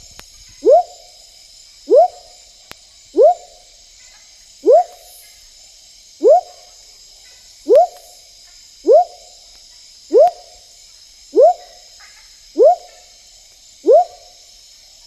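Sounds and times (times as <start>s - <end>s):
smoky jungle frog Leptodactylus pentadactylus giving rising whoop notes in the Ecuadorian Amazon: 0.6s - 1.1s, 1.8s - 2.4s, 3.1s - 3.6s, 4.6s - 5.1s, 6.2s - 6.7s, 7.6s - 8.1s, 8.8s - 9.3s, 10.1s - 10.6s, 11.3s - 11.9s, 12.5s - 13.1s, 13.8s - 14.4s.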